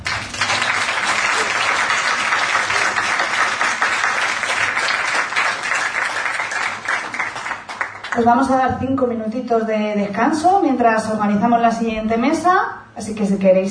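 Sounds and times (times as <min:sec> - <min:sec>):
audience applause: 0:00.0 - 0:08.2
speech: 0:08.2 - 0:13.7.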